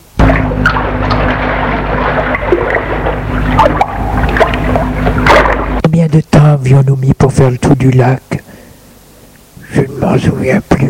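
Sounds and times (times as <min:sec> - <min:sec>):
low droning hum: 0:00.0 - 0:10.4
water pouring down a mountainside: 0:00.1 - 0:05.8
speech: 0:06.7 - 0:08.4, 0:09.7 - 0:10.8.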